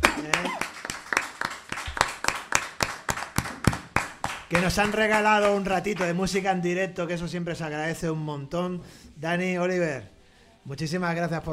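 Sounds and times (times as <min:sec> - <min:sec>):
audience applause: 0:00.0 - 0:06.2
speech: 0:04.5 - 0:11.5.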